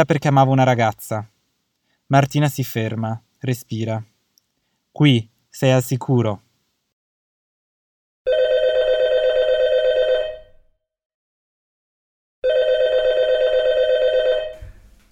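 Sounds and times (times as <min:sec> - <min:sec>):
speech: 0:00.0 - 0:01.3, 0:02.1 - 0:04.1, 0:05.0 - 0:06.4
telephone ringing: 0:08.3 - 0:10.6, 0:12.4 - 0:14.6.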